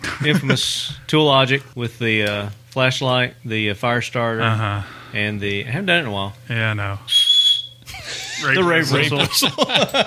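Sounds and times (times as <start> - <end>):
laughter: 0.0 - 0.9, 7.9 - 10.0
speech: 0.2 - 7.2, 8.4 - 10.0
personal safety whistle blown: 7.1 - 7.8.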